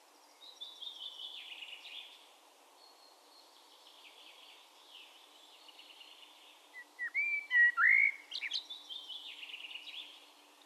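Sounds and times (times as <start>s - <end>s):
Eurasian blackbird whistling: 7.0s - 8.6s.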